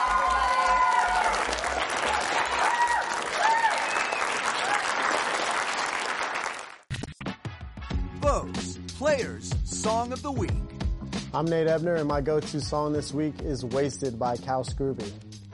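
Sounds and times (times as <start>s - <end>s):
round of applause: 0.0s - 6.9s
speech: 9.0s - 10.7s, 11.3s - 15.2s.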